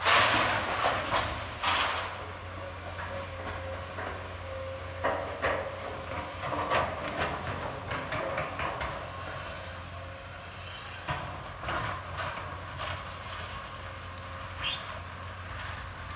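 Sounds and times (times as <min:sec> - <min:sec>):
excavator at a construction site: 0:00.0 - 0:16.1
truck at a construction site: 0:00.0 - 0:16.1.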